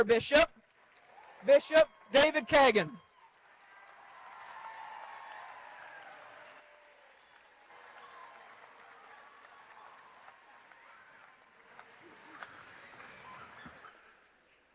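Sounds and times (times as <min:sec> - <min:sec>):
speech: 0:00.0 - 0:00.6, 0:01.4 - 0:03.0
audience applause welcoming a bishop at a diocesan gathering: 0:00.6 - 0:14.2.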